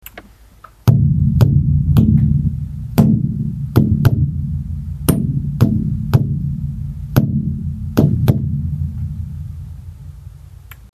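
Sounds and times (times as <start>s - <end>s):
taru-daiko barrel drum: 0.8s - 10.7s.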